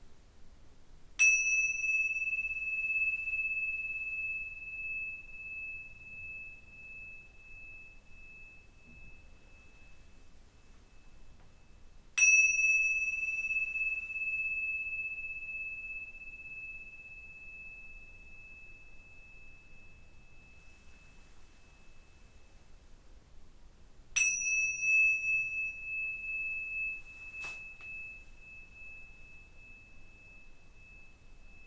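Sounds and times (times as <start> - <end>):
singing bowl struck and ringing: 1.2 - 22.7, 24.2 - 31.6.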